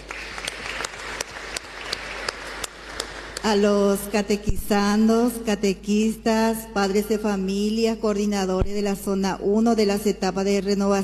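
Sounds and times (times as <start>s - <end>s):
audience applause: 0.0s - 3.5s
speech: 3.4s - 11.0s.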